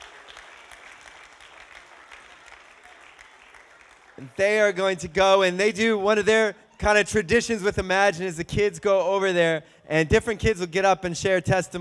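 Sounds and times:
audience clapping: 0:00.0 - 0:05.0
speech: 0:04.2 - 0:11.7.

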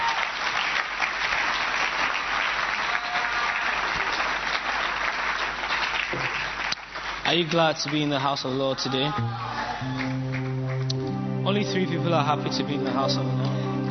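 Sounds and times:
audience clapping hands: 0:00.0 - 0:11.3
speech: 0:07.3 - 0:10.2, 0:11.5 - 0:13.6.

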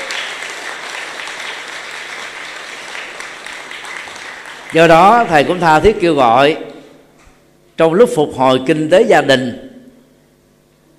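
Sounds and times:
audience applause: 0:00.0 - 0:05.4
speech: 0:04.7 - 0:06.7, 0:07.8 - 0:09.7.

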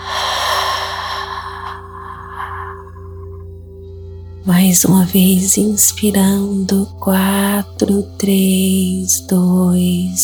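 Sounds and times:
slow airy exhalation during a guided breathing exercise: 0:00.0 - 0:03.5
sustained musical drone: 0:00.0 - 0:10.2
speech: 0:04.4 - 0:10.2.

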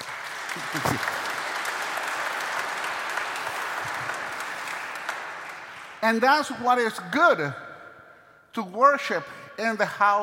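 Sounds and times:
church congregation applause welcoming members of the Church of Jesus Christ of Latter-day Saints: 0:00.0 - 0:07.4
speech: 0:00.6 - 0:01.2, 0:06.1 - 0:07.6, 0:08.5 - 0:10.2.

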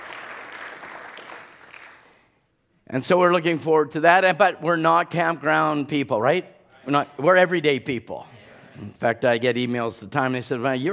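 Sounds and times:
audience clapping: 0:00.0 - 0:02.3
speech: 0:02.9 - 0:10.9.

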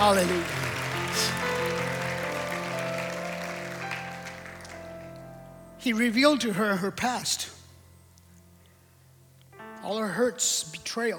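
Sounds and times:
audience clapping: 0:00.0 - 0:05.3
speech: 0:00.1 - 0:00.6, 0:05.8 - 0:07.6, 0:09.8 - 0:11.1.

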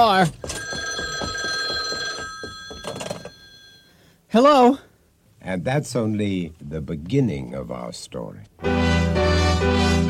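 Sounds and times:
speech: 0:00.0 - 0:00.6, 0:04.4 - 0:10.0
telephone bell ringing: 0:00.3 - 0:04.0.

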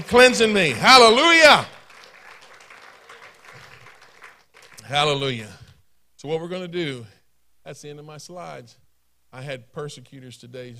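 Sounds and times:
church congregation clapping in praise: 0:00.0 - 0:05.4
speech: 0:00.1 - 0:01.8, 0:04.9 - 0:05.6, 0:06.2 - 0:10.7.

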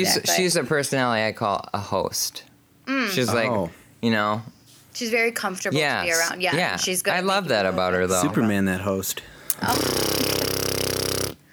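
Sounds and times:
speech: 0:00.0 - 0:10.4
drilling: 0:09.6 - 0:11.4.

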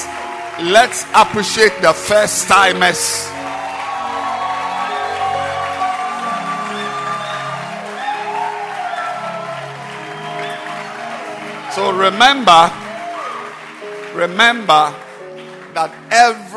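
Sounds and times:
people clapping: 0:00.0 - 0:16.5
speech: 0:00.6 - 0:03.4, 0:11.8 - 0:12.8, 0:14.2 - 0:15.0, 0:15.8 - 0:16.5.

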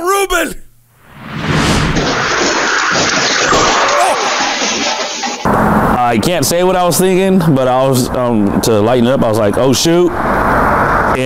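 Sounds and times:
speech: 0:00.4 - 0:00.6, 0:06.1 - 0:10.6
car crashing into another car: 0:01.0 - 0:06.0.

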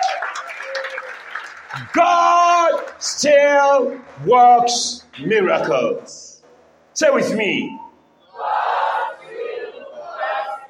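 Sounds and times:
audience clapping hands: 0:00.0 - 0:04.2
speech: 0:00.4 - 0:06.3, 0:07.0 - 0:07.8, 0:08.4 - 0:08.8.

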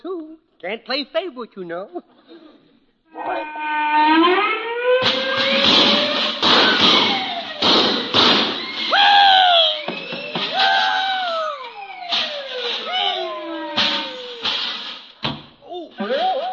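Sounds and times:
speech: 0:00.0 - 0:02.4, 0:03.2 - 0:05.2
high squealing sliding tones: 0:03.2 - 0:15.2
pots, pans and bells banging: 0:05.0 - 0:15.6.

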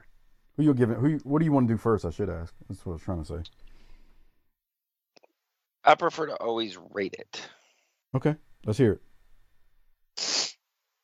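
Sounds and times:
speech: 0:00.6 - 0:03.7, 0:05.8 - 0:09.1
sharp forceful sniff through the nose: 0:10.2 - 0:10.6.

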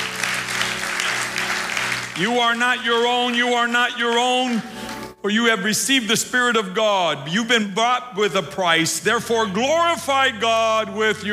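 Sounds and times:
audience clapping: 0:00.0 - 0:05.2
speech: 0:02.2 - 0:11.3.

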